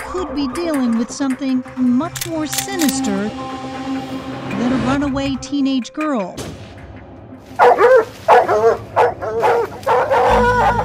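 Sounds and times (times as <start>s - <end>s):
speech: 0.2s - 3.8s, 4.6s - 6.6s, 7.6s - 9.7s
cadaver dogs barking: 7.6s - 10.8s.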